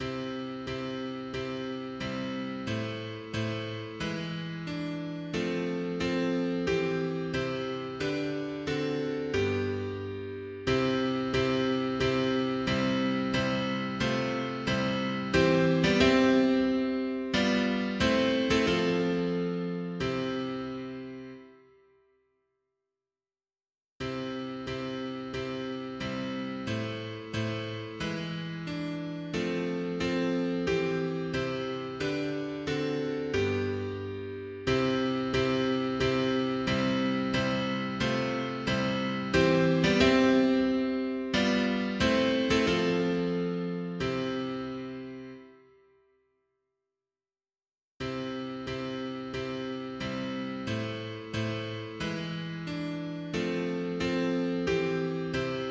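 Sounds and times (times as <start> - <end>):
mono piano: 0.0 - 22.2, 24.0 - 46.1, 48.0 - 55.6.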